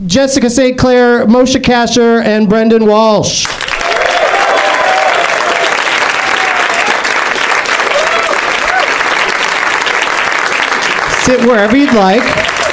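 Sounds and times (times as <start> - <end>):
speech: 0.0 - 3.6, 11.3 - 12.4
comedy show studio audience applause: 3.4 - 12.7.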